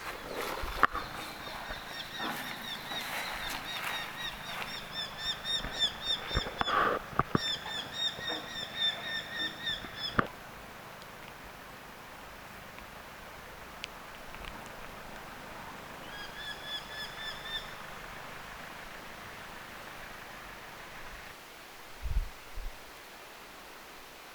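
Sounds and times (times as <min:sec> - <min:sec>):
Eurasian hobby fledglings calling with rapid ringing notes: 0:00.0 - 0:10.3, 0:15.3 - 0:20.6.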